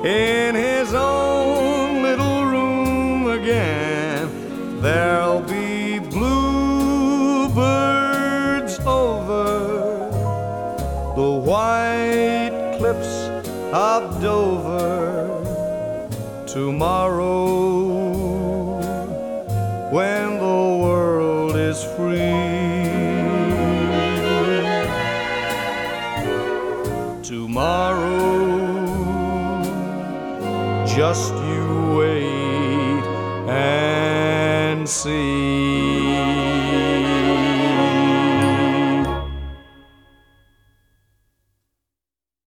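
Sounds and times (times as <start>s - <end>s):
romantic string orchestra playing: 0.0s - 39.8s.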